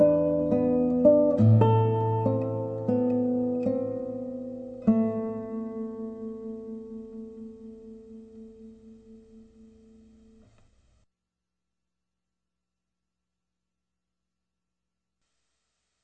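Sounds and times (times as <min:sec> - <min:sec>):
sad song: 0:00.0 - 0:10.1.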